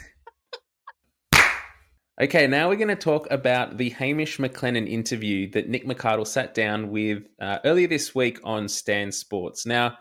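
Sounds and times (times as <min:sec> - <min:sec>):
hand clap for recording sync: 0:01.3 - 0:01.8
speech: 0:02.2 - 0:09.9.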